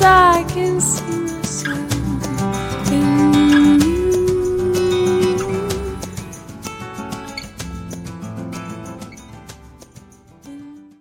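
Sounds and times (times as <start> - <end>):
English pop singer singing: 0.0 - 6.4.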